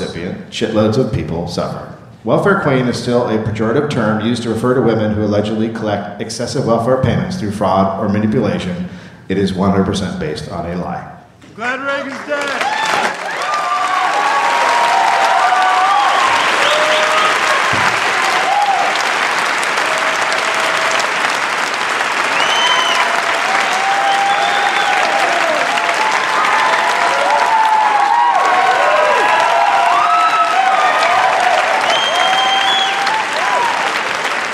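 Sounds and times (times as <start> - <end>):
speech: 0.2 - 13.1
live audience applause: 11.4 - 34.5.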